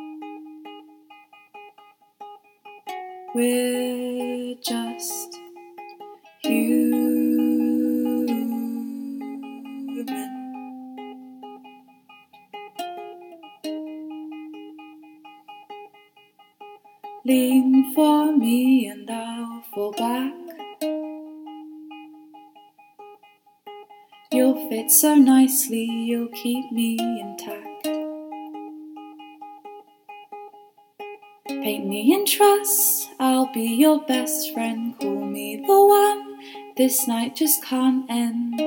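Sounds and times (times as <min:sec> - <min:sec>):
ukulele not tuned properly: 0:00.0 - 0:38.6
person singing: 0:02.9 - 0:11.6, 0:17.0 - 0:20.9, 0:24.3 - 0:28.0, 0:31.5 - 0:38.6.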